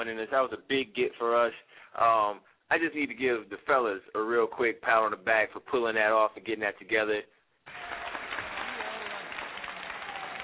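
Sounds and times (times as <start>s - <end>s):
speech: 0.0s - 7.9s
people clapping hands: 7.7s - 10.4s.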